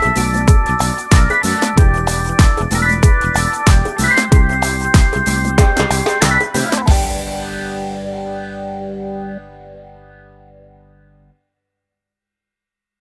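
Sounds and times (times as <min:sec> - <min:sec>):
reggae dance music: 0:00.0 - 0:09.4.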